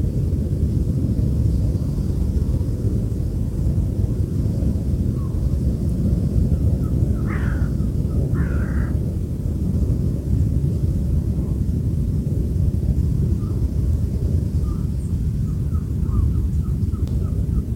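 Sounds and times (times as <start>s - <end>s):
heavy roaring wind: 0.0s - 17.7s
bird calls: 6.8s - 9.0s, 14.4s - 17.7s.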